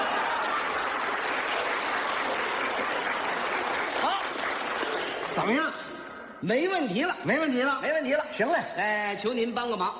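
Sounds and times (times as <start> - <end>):
audience clapping and laughing: 0.0 - 5.6
speech: 5.4 - 5.8, 6.4 - 9.9.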